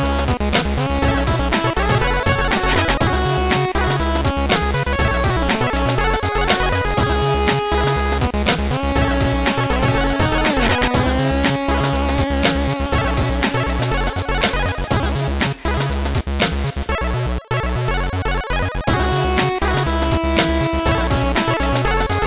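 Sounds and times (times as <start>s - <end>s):
chiptune Arabic trumpet: 0.0s - 16.0s, 17.0s - 22.2s.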